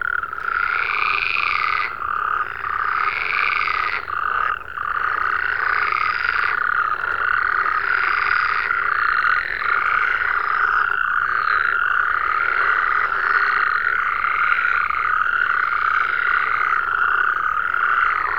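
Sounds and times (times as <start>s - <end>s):
frogs croaking in a dense chorus: 0.0s - 18.3s.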